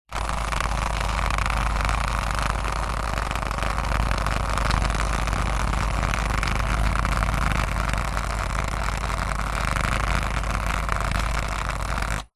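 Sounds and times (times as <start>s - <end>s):
vibrating massager rattling on tiles: 0.1s - 12.3s.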